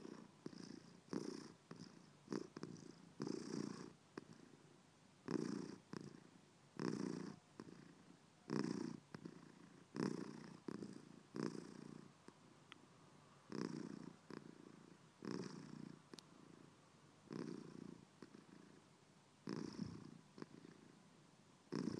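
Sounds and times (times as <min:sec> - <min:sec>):
purring: 0:00.0 - 0:04.6, 0:05.2 - 0:12.2, 0:13.5 - 0:16.7, 0:17.3 - 0:18.8, 0:19.4 - 0:21.0, 0:21.7 - 0:21.9.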